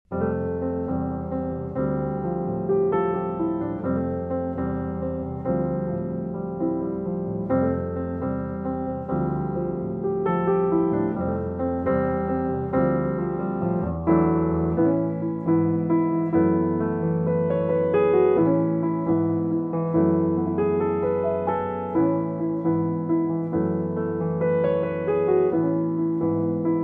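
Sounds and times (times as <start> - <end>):
solo piano: 0.0 - 26.8.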